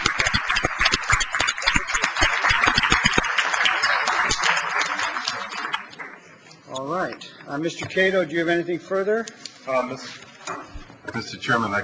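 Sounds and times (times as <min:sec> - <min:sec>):
round of applause from a group: 0:00.0 - 0:06.4
speech: 0:07.5 - 0:10.2, 0:11.1 - 0:11.8.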